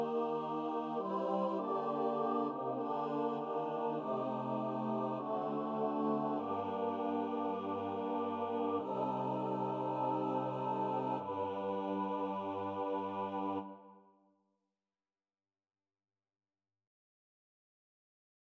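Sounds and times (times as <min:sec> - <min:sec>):
choir singing: 0:00.0 - 0:14.0.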